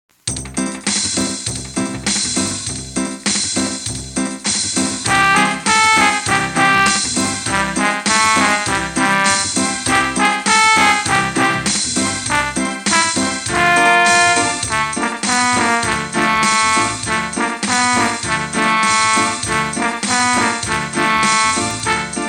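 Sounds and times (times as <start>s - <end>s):
reggae music: 0.3s - 22.2s.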